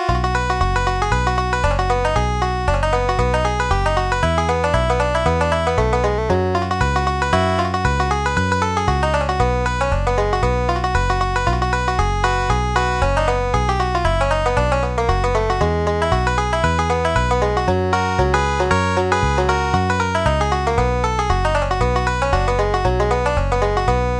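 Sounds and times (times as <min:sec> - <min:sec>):
banjo: 0:00.1 - 0:24.1.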